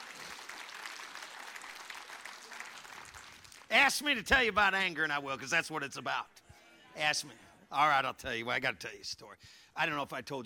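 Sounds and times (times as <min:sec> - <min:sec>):
audience applause: 0:00.0 - 0:03.7
speech: 0:03.7 - 0:06.4, 0:07.0 - 0:10.4.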